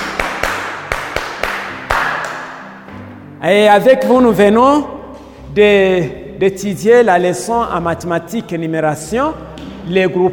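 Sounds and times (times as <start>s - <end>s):
class applauding: 0.0s - 2.6s
speech: 3.4s - 4.9s, 5.5s - 10.3s.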